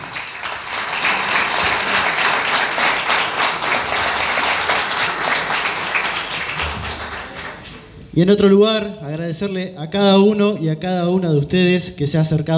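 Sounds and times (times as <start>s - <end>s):
audience applause: 0.0s - 7.9s
speech: 8.2s - 12.5s.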